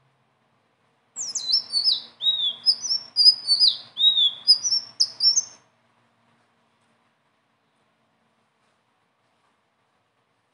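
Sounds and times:
leafbird song: 0:01.2 - 0:05.6.

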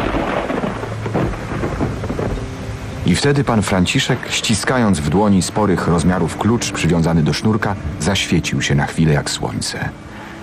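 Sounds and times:
thunderclap from lightning strike: 0:00.0 - 0:02.5
speech: 0:03.1 - 0:10.1.

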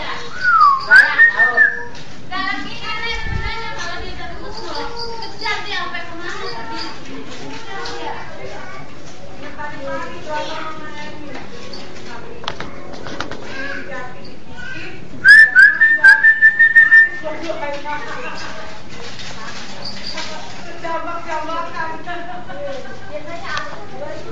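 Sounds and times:
orange-headed thrush singing: 0:00.3 - 0:02.0, 0:15.3 - 0:17.3.

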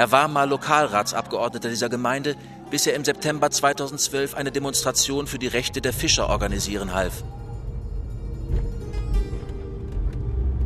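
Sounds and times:
speech: 0:00.0 - 0:07.4
road noise: 0:03.9 - 0:10.6
car driving along a narrow alley: 0:04.6 - 0:10.6
rattles and bumps: 0:06.3 - 0:10.6.

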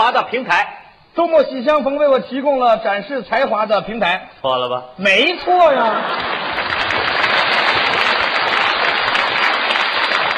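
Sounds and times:
speech: 0:00.2 - 0:06.5
crowd clapping: 0:05.8 - 0:10.3.

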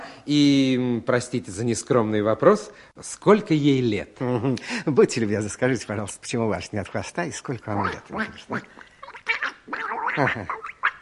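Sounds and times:
speech: 0:00.2 - 0:08.9, 0:09.7 - 0:10.7
person imitating frog croaking: 0:07.7 - 0:11.0.

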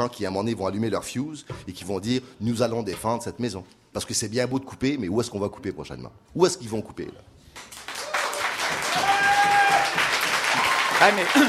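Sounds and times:
speech: 0:00.0 - 0:07.7, 0:11.0 - 0:11.4
studio audience applause on a French-language radio talk show: 0:07.6 - 0:11.4.

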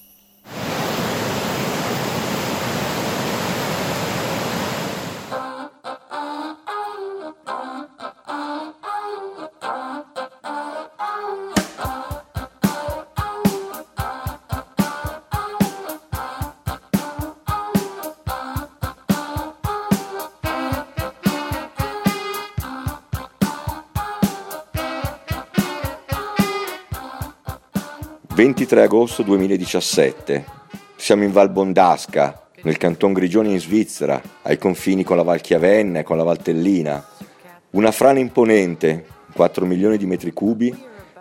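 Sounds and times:
waterfalls rushing: 0:00.5 - 0:05.4
rhythmic music with pulsing beat: 0:11.6 - 0:41.1
speech: 0:28.4 - 0:37.1, 0:37.7 - 0:40.9.

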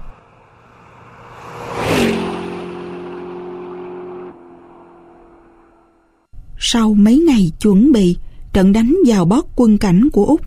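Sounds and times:
motorbike engine starting on a street and speeding away: 0:00.0 - 0:06.3
speech: 0:06.7 - 0:10.4.

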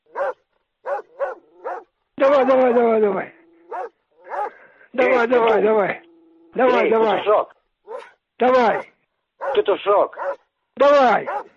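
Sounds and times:
dog barking: 0:00.0 - 0:02.9, 0:03.6 - 0:04.7, 0:07.8 - 0:10.5, 0:11.2 - 0:11.5
speech: 0:02.2 - 0:03.4, 0:05.0 - 0:06.0, 0:06.6 - 0:07.6, 0:08.4 - 0:08.9, 0:09.5 - 0:10.2, 0:10.8 - 0:11.4.

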